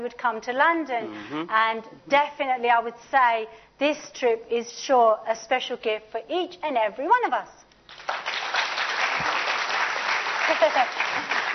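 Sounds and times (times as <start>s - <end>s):
speech: 0.0s - 7.6s, 10.5s - 11.4s
audience clapping: 7.9s - 11.5s.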